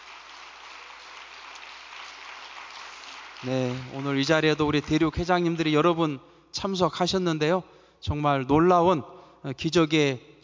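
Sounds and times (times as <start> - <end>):
audience applause: 0.0 - 5.2
speech: 3.4 - 10.4.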